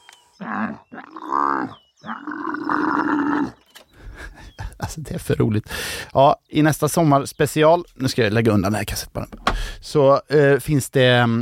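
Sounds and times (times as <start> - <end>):
speech: 0.4 - 1.8, 5.0 - 11.4
camel vocalization: 0.4 - 4.8
laughter: 4.0 - 5.5.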